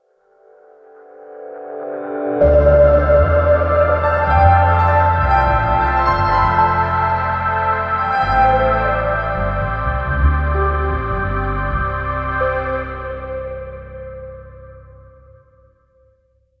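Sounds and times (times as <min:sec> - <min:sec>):
startup sound: 0:02.5 - 0:15.2.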